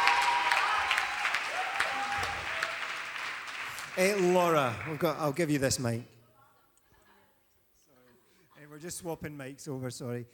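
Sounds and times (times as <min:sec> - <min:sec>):
audience cheering: 0:00.0 - 0:05.1
audience applause: 0:00.0 - 0:05.9
speech: 0:04.0 - 0:06.2, 0:08.8 - 0:10.3.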